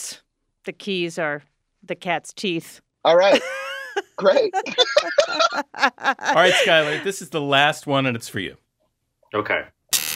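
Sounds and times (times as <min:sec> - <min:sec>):
speech: 0:00.1 - 0:03.6, 0:04.2 - 0:08.6, 0:09.3 - 0:09.8
laughter: 0:03.2 - 0:07.2
pop song rendered as a tinny buzzy MIDI-style tune: 0:04.2 - 0:07.7.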